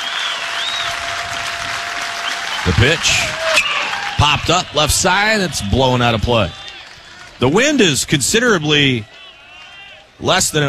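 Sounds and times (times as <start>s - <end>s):
thin high whistle: 0.0s - 1.0s, 2.2s - 4.2s
baseball crowd on its feet applauding: 0.0s - 10.6s
speech: 2.6s - 3.4s, 4.2s - 6.6s, 7.4s - 9.2s, 10.2s - 10.6s.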